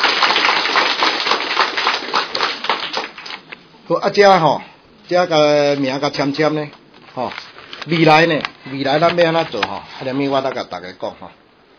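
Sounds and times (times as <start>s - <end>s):
crowd applause: 0.0s - 3.4s
speech: 3.9s - 11.4s.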